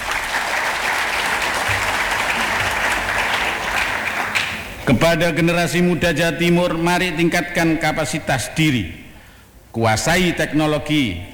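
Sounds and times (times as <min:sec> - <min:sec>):
audience applause: 0:00.0 - 0:04.9
speech: 0:04.9 - 0:09.0, 0:09.8 - 0:11.3.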